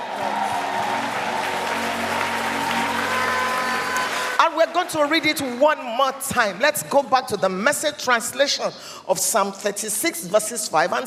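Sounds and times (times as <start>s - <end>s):
audience applause: 0.0s - 5.3s
speech: 4.6s - 11.0s.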